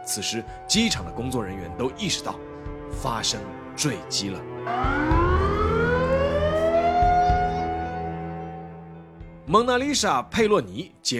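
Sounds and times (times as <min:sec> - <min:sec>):
speech: 0:00.1 - 0:05.2, 0:09.5 - 0:11.1
airport alarm siren: 0:04.6 - 0:08.9.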